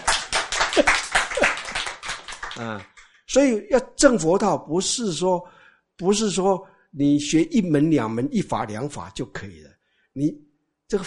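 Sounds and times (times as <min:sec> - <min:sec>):
audience clapping: 0:00.0 - 0:03.4
speech: 0:02.6 - 0:11.0.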